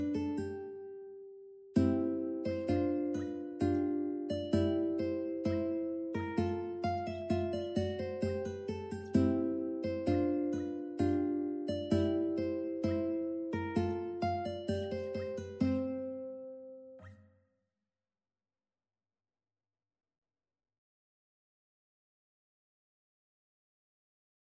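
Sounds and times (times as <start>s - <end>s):
ukulele andante: 0.0s - 16.6s.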